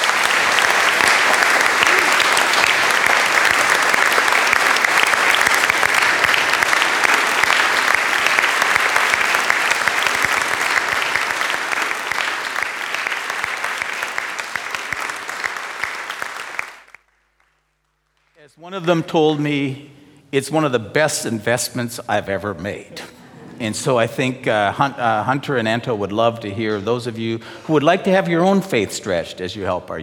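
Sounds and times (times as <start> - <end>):
audience applause: 0.0 - 19.0
speech: 18.8 - 30.0.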